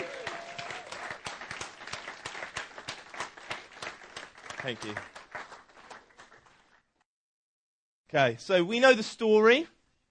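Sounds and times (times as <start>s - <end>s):
audience applause: 0.0s - 6.8s
speech: 4.6s - 5.2s, 8.1s - 9.8s.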